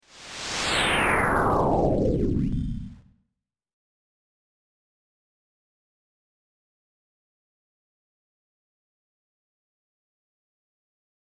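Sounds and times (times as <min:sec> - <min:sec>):
old operating system whoosh: 0:00.0 - 0:03.1.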